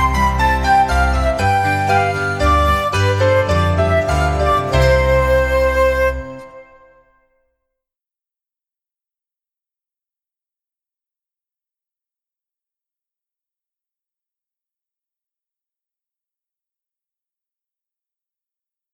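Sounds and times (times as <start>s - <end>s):
songs played slowly: 0.0s - 7.3s.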